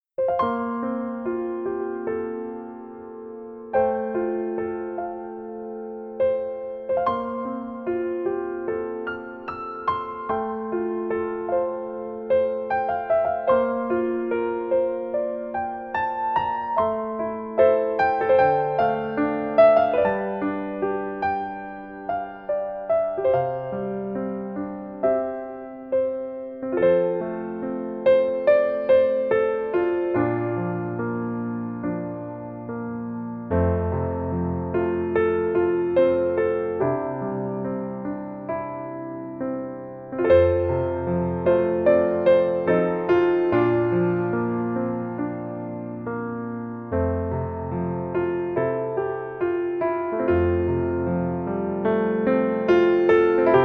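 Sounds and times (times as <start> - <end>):
piano A major chord: 0.2 - 53.6.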